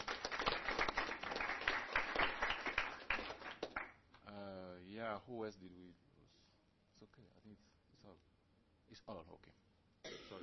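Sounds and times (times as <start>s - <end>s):
crowd applauding: 0.0s - 4.0s
speech: 5.2s - 6.1s, 7.0s - 8.3s, 8.9s - 10.4s.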